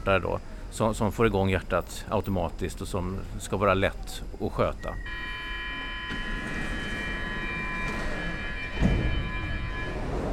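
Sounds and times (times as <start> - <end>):
speech: 0.0 - 5.4
subway train humming in an underground station: 0.0 - 10.3
clunk: 6.1 - 10.3.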